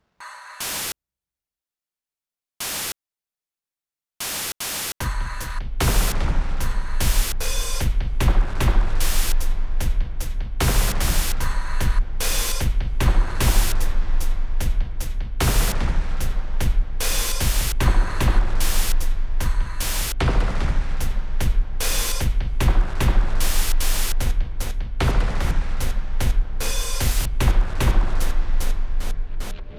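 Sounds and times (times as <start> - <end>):
percussion: 4.4 - 29.7.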